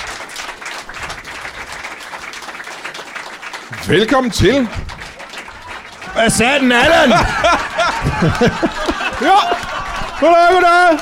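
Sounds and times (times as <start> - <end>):
studio audience applause on a Danish entertainment show: 0.0 - 10.9
speech: 3.7 - 5.0, 6.2 - 9.6, 10.2 - 10.9
laughter: 5.2 - 10.9.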